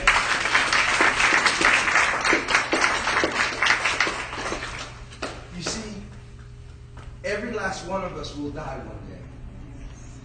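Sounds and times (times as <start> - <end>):
audience hand clapping: 0.0 - 6.2
speech: 8.1 - 9.0.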